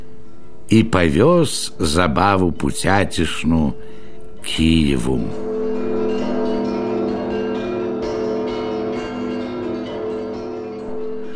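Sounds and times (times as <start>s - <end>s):
speech: 0.7s - 5.4s
church bells pealing in celebration: 4.4s - 11.3s.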